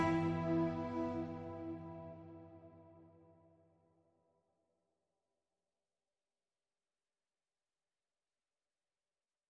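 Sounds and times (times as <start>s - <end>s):
piano arpeggio: 0.0s - 2.8s.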